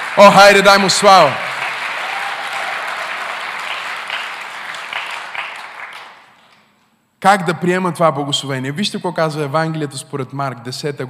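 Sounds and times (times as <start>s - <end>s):
audience applause: 0.0s - 6.4s
speech: 0.2s - 1.5s, 7.2s - 11.0s.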